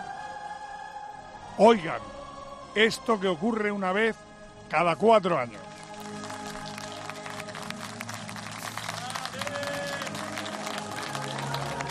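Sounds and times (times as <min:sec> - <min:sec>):
speech: 0:01.6 - 0:02.2, 0:02.8 - 0:05.7
stadium crowd applause: 0:05.7 - 0:11.8.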